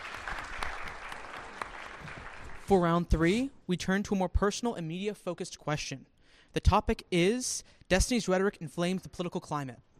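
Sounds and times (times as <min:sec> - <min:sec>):
audience applause for debaters at a debate event: 0:00.0 - 0:02.7
speech: 0:02.7 - 0:09.9.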